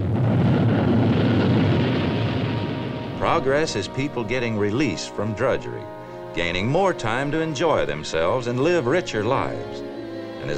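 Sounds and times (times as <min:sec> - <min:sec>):
roar of a rocket: 0:00.0 - 0:05.2
speech: 0:03.3 - 0:10.5.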